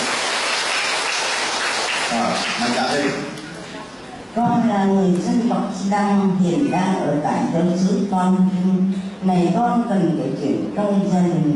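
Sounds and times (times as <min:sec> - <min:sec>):
audience applause: 0:00.0 - 0:03.3
speech: 0:02.1 - 0:03.4, 0:04.4 - 0:11.5.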